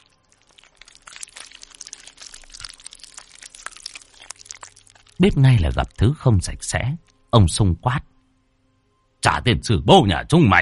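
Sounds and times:
wet crunchy chewing of raw fish: 0:00.0 - 0:06.0
speech: 0:05.2 - 0:08.1, 0:09.2 - 0:10.5.

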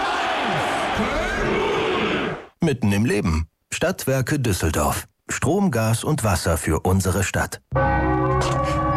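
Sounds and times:
stadium crowd chanting: 0:00.0 - 0:02.5
speech: 0:01.0 - 0:01.6, 0:02.6 - 0:08.8.

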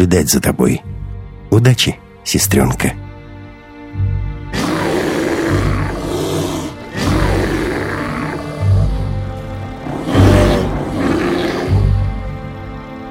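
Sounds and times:
speech: 0:00.0 - 0:00.9, 0:01.6 - 0:03.1
large beast growling menacingly: 0:04.5 - 0:12.7.

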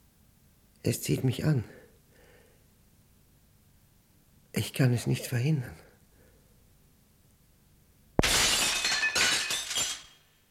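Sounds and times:
speech: 0:00.8 - 0:01.8, 0:04.7 - 0:05.8
window pane smashed with bare fists shattering: 0:08.2 - 0:10.3.

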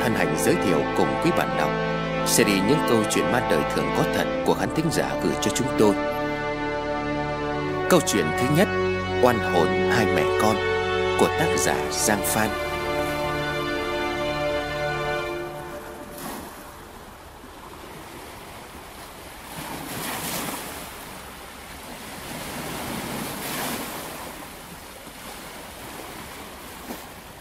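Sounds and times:
sustained musical tones: 0:00.0 - 0:17.3
speech: 0:00.1 - 0:06.2, 0:07.9 - 0:12.7
ocean surf waves crashing: 0:15.8 - 0:27.3.

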